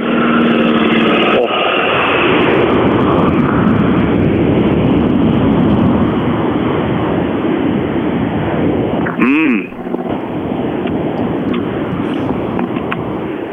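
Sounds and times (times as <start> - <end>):
Saab rally car engine roaring while passing: 0.0 - 13.2.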